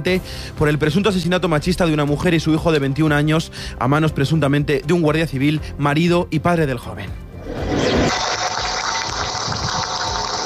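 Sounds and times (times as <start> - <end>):
speech: 0.0 - 7.2
applause: 8.2 - 10.4.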